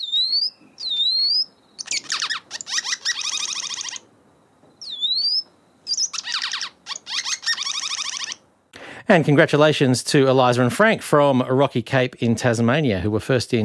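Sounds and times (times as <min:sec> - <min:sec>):
welcome swallow singing: 0:00.0 - 0:04.1, 0:04.8 - 0:08.4
speech: 0:09.1 - 0:13.6.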